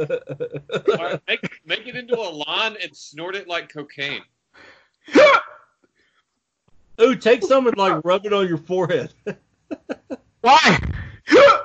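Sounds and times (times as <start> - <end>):
laughter: 0.0 - 2.8, 7.2 - 10.2
speech: 0.0 - 4.4, 5.0 - 5.6, 7.0 - 11.6
hiccup: 5.1 - 5.6, 11.3 - 11.6.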